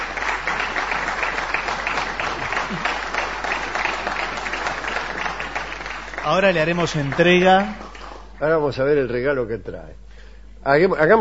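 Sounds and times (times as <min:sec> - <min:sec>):
applause: 0:00.0 - 0:08.6
speech: 0:06.3 - 0:07.8, 0:08.4 - 0:10.0, 0:10.6 - 0:11.1.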